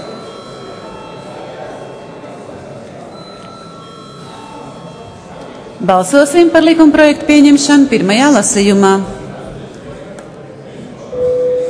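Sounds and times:
parliament chamber voting bell ringing: 0.0 - 8.1, 11.1 - 11.6
speech: 5.8 - 9.2.

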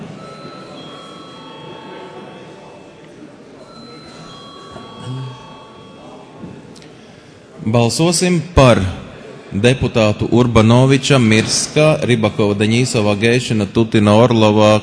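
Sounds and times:
parliament voting bell ringing: 0.0 - 6.7
murmur of voices: 0.0 - 14.8
speech: 7.6 - 14.8.

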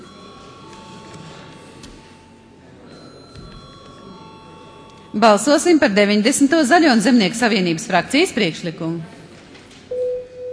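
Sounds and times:
parliament voting bell ringing: 0.0 - 6.0
faint murmur of noise: 0.0 - 10.5
speech: 5.2 - 9.2.

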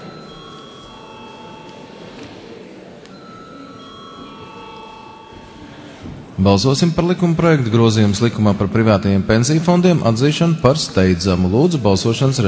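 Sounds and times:
parliament voting electric bell ringing: 0.0 - 2.4, 3.1 - 6.0
speech: 6.4 - 12.4.

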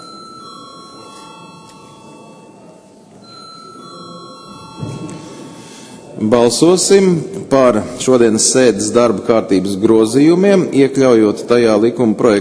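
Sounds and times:
bell rung to call a vote: 0.0 - 6.9
murmur of room noise: 0.0 - 12.3
speech: 6.2 - 12.3.

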